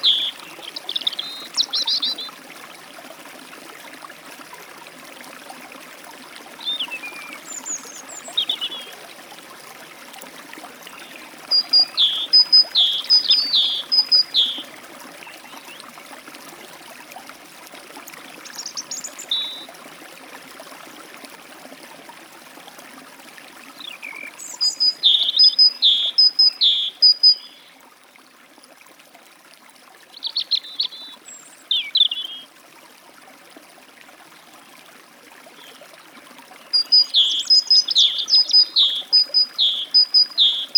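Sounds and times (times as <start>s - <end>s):
great tit at a forest stream: 0.0s - 2.3s, 6.6s - 9.0s, 11.0s - 14.7s, 18.5s - 19.6s, 24.0s - 27.7s, 30.2s - 32.4s, 36.8s - 40.7s
European robin at a forest stream: 0.0s - 2.4s, 6.6s - 9.0s, 10.9s - 14.8s, 18.4s - 19.7s, 23.8s - 27.7s, 30.2s - 32.5s, 36.7s - 40.7s
forest stream flowing: 0.0s - 40.7s.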